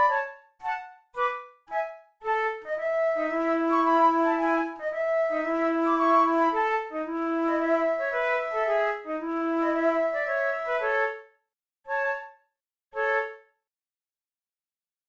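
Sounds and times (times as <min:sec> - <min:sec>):
flute method exercise: 0:00.0 - 0:11.2.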